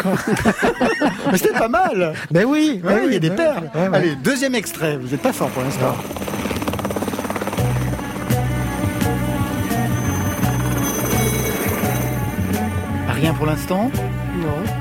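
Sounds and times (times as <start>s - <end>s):
laughter: 0.0s - 4.2s
speech: 0.0s - 6.4s, 13.2s - 14.6s
helicopter flying: 4.6s - 14.2s.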